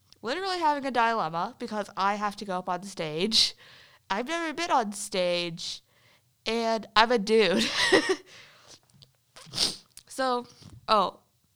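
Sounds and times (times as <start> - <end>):
speech: 0.2 - 5.8, 6.4 - 8.5, 9.5 - 11.2
sniffling nose: 8.4 - 9.9.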